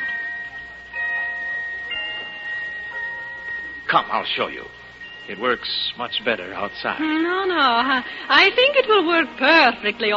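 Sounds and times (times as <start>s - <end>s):
pocket watch chiming: 0.0s - 10.1s
speech: 3.9s - 10.1s.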